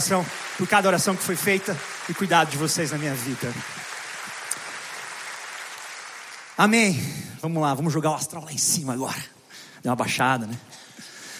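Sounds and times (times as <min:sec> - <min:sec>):
speech: 0:00.0 - 0:03.9, 0:06.6 - 0:11.1
church congregation clapping: 0:00.0 - 0:07.0.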